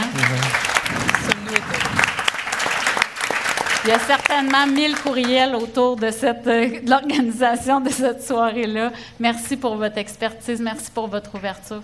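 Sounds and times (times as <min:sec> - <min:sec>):
audience applause: 0:00.0 - 0:06.3
laughter: 0:00.0 - 0:11.8
speech: 0:03.9 - 0:11.8.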